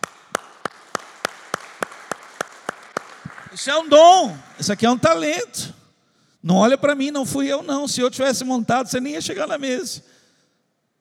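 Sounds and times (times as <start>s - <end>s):
audience applauding: 0.0s - 5.2s
speech: 3.5s - 5.8s, 6.4s - 10.2s.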